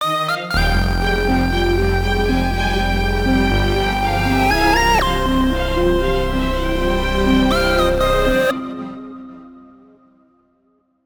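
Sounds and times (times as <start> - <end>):
boss section music: 0.2 - 8.5.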